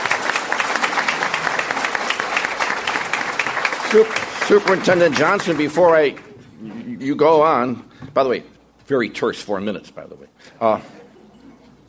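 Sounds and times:
round of applause: 0.0 - 6.3
speech: 3.9 - 11.0.

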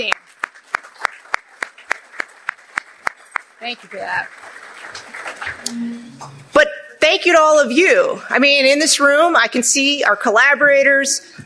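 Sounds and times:
audience clapping: 0.0 - 6.6
speech: 3.6 - 4.5, 5.6 - 11.4.

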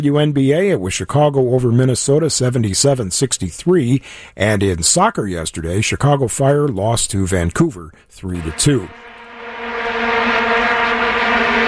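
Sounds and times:
speech: 0.0 - 9.1
vuvuzela drone: 8.4 - 11.6.

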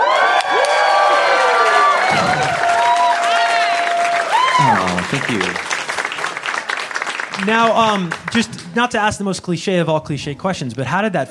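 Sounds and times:
crowd applause and cheering: 0.0 - 9.0
speech: 7.4 - 11.2.

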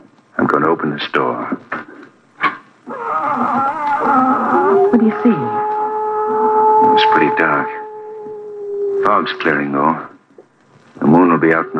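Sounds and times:
speech: 0.5 - 1.9, 4.1 - 5.6, 6.9 - 7.8, 9.0 - 10.1, 11.1 - 11.7
cat howling loudly: 2.9 - 10.1, 11.0 - 11.7.

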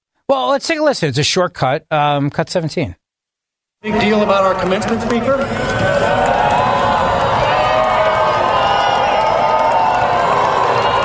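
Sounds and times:
speech: 0.3 - 3.0, 3.8 - 6.2
crowd booing: 3.9 - 11.0.

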